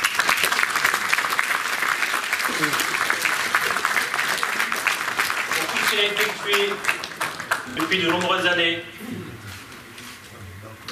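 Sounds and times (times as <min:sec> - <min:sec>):
audience applause: 0:00.0 - 0:08.4
speech: 0:05.9 - 0:06.9, 0:07.8 - 0:09.2.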